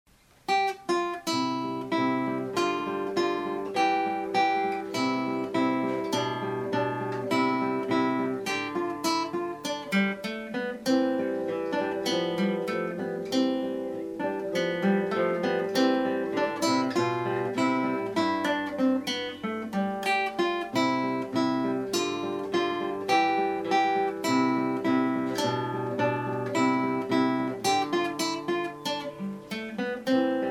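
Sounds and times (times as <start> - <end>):
instrumental piece: 0.5 - 30.4.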